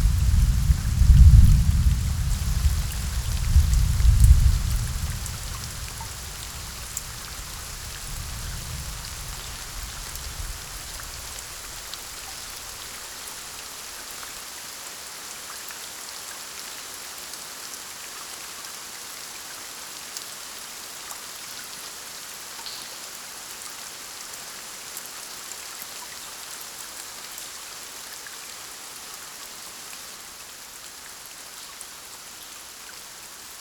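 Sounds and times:
distant thunder: 0.0 - 13.0
raindrops: 0.0 - 14.4.

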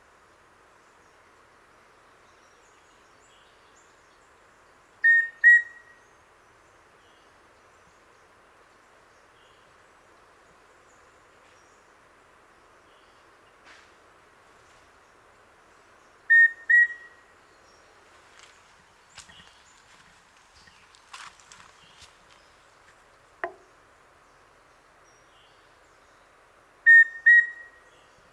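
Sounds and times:
Formicarius rufipectus rufous-breasted antthrush song: 5.0 - 6.0, 16.3 - 17.3, 26.8 - 27.9.

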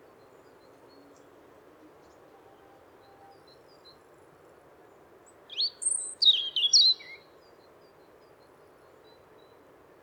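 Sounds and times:
European robin singing: 5.5 - 7.2.

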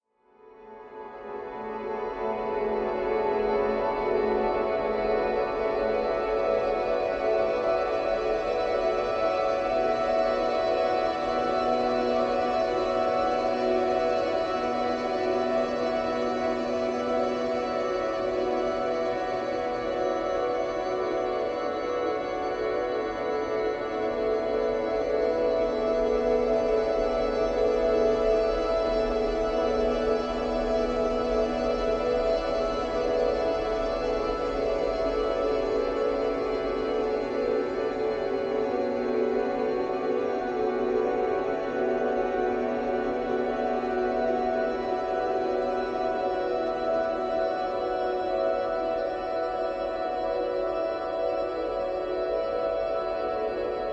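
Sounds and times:
relaxing sleep music: 0.0 - 53.9.

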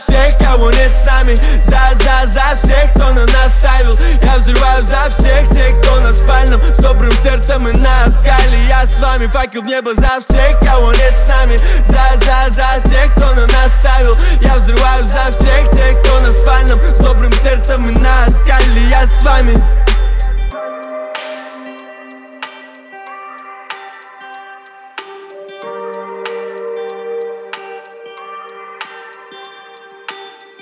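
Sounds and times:
low bass tone at 41 to 46 Hz: 0.1 - 9.4, 10.3 - 20.5.

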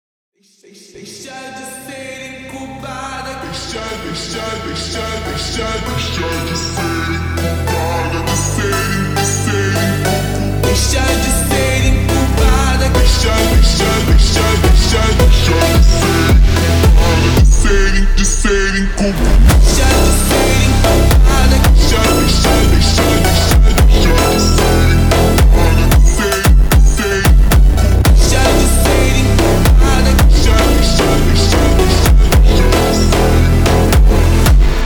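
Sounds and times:
slowed funk music: 5.6 - 34.8.

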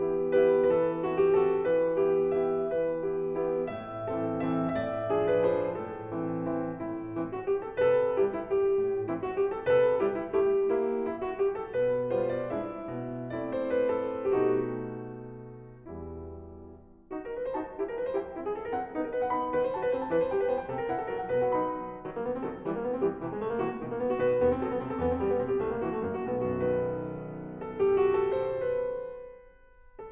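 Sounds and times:
waltz music: 0.1 - 29.2.

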